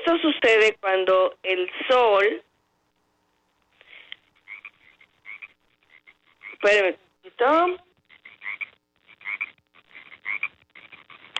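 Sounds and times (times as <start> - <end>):
speech: 0.1 - 2.5, 6.6 - 7.8
frog croaking: 4.4 - 6.8, 8.0 - 11.3.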